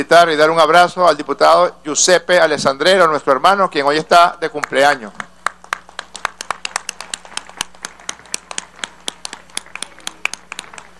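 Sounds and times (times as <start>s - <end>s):
speech: 0.0s - 5.3s
applause in a legislative session: 4.6s - 10.9s.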